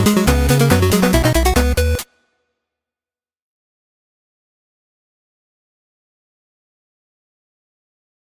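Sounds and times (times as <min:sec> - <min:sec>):
NES chiptune music: 0:00.0 - 0:02.1.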